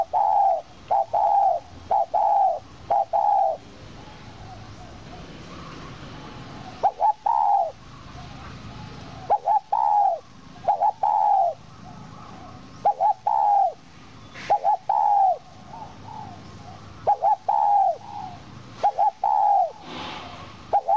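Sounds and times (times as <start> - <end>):
owl call: 0.0 - 3.6, 6.6 - 7.8, 8.8 - 13.8, 14.4 - 19.8, 20.7 - 20.9.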